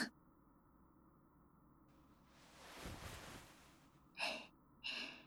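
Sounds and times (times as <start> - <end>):
ASMR relaxed head massage: 2.4 - 3.8.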